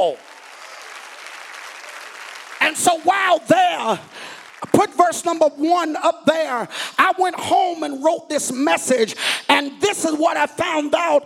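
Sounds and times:
audience clapping hands: 0.0s - 5.6s
speech: 2.7s - 11.2s.

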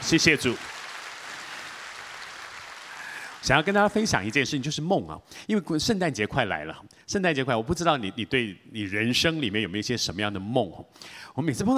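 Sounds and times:
audience applauding: 0.0s - 4.7s
speech: 0.1s - 0.7s, 3.4s - 11.7s.

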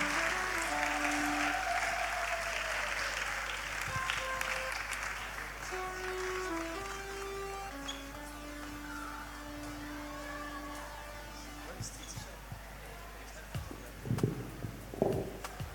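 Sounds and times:
soft sustained organ or keyboard tones: 0.0s - 2.2s, 3.6s - 12.5s
audience clapping: 0.0s - 12.4s, 13.5s - 15.7s.

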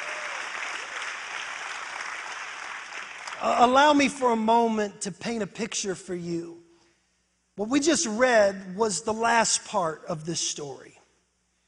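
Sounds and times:
audience clapping: 0.0s - 3.7s
speech: 3.4s - 6.6s, 7.6s - 11.0s.

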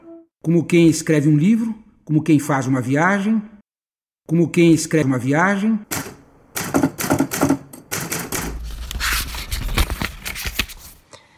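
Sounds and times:
speech: 0.4s - 3.5s, 4.3s - 6.2s
typewriter typing: 5.9s - 9.4s.

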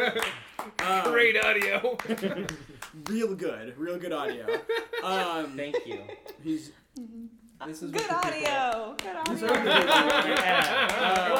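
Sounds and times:
laughter: 0.0s - 0.6s, 1.6s - 2.9s, 4.1s - 6.8s, 9.2s - 11.3s
live in-studio hand clapping: 0.0s - 3.5s, 7.9s - 11.3s
speech: 0.9s - 6.8s, 7.6s - 11.3s.

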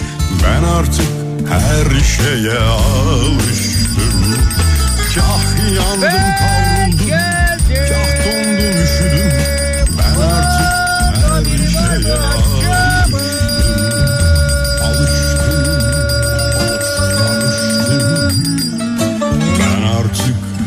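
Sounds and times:
speech: 0.4s - 9.1s
bell ringing: 3.2s - 19.8s.

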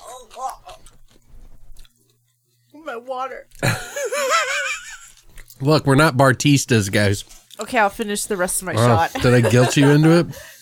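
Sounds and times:
biting and chewing a pickle: 0.0s - 2.4s, 5.1s - 5.6s
speech: 3.0s - 4.8s, 5.6s - 10.5s
laughter: 3.6s - 5.2s, 8.8s - 10.6s.

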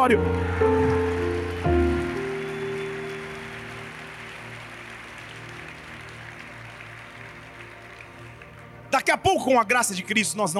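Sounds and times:
speech: 0.0s - 1.0s, 9.4s - 10.5s
sustained keyboard chords: 0.0s - 5.8s
audience applauding: 0.0s - 9.5s.

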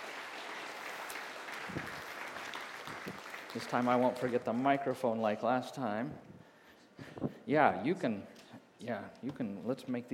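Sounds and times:
church congregation clapping as a couple comes up: 0.0s - 5.2s
speech: 3.6s - 6.3s, 7.5s - 10.1s.

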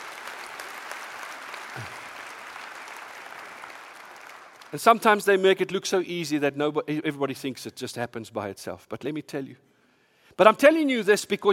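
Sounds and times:
audience applause for a hardworking team: 0.0s - 4.8s
speech: 1.8s - 2.0s, 4.7s - 9.7s, 10.4s - 11.5s.

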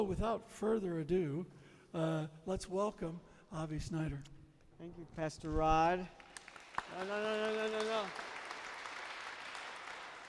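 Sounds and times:
speech: 0.0s - 6.2s, 6.9s - 8.3s
audience applause: 6.2s - 10.2s.

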